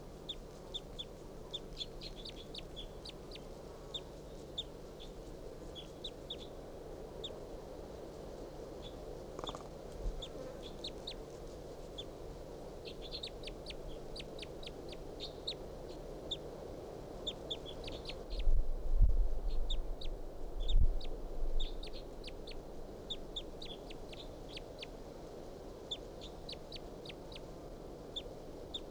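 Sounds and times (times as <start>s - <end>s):
wild bird soft calls: 0.0s - 6.6s, 8.8s - 11.2s, 12.8s - 16.4s, 17.2s - 18.6s, 19.5s - 25.0s
steady low hum: 0.0s - 28.8s.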